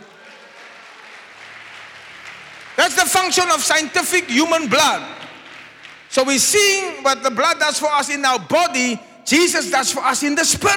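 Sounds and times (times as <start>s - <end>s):
applause: 0.0s - 6.9s
speech: 2.9s - 5.2s, 6.1s - 10.7s.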